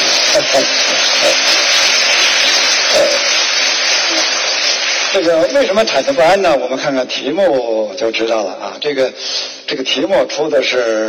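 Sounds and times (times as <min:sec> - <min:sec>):
audience applause: 0:00.0 - 0:06.3
speech: 0:00.4 - 0:01.6, 0:05.2 - 0:11.0.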